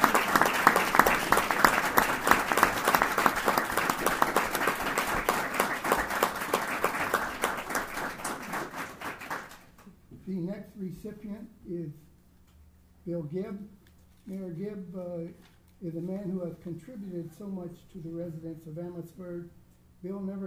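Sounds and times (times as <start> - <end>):
warm round of applause: 0.0 - 9.7
speech: 11.0 - 12.1, 13.0 - 20.4.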